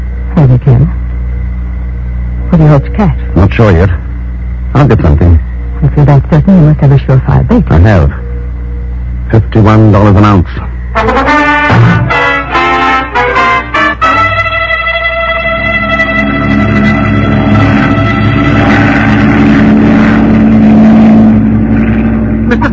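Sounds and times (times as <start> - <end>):
flying boat engine drone: 0.0 - 22.7
speech: 2.6 - 4.0, 4.7 - 8.2, 9.3 - 12.1.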